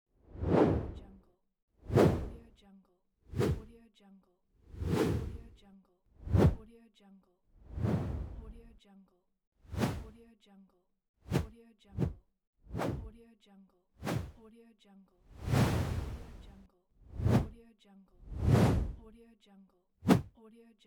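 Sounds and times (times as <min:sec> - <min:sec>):
whooshes: 0:00.3 - 0:01.1, 0:01.9 - 0:02.4, 0:03.3 - 0:03.6, 0:04.8 - 0:05.5, 0:06.2 - 0:06.6, 0:07.7 - 0:08.6, 0:09.7 - 0:10.1, 0:14.0 - 0:14.3, 0:15.4 - 0:17.5, 0:18.2 - 0:19.0.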